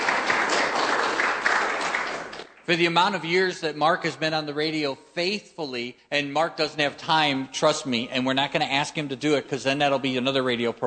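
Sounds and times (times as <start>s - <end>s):
audience clapping: 0.0s - 2.9s
speech: 2.7s - 10.8s.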